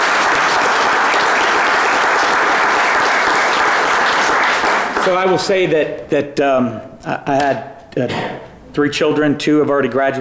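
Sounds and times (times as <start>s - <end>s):
audience applause: 0.0s - 5.4s
speech: 5.1s - 10.1s.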